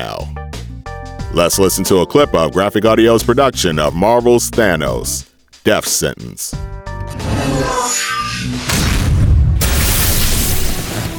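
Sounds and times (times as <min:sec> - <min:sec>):
speech: 0:00.0 - 0:00.4, 0:01.3 - 0:08.8
explosion effect of a burst of cosmic energy in an audio drama: 0:08.7 - 0:11.1.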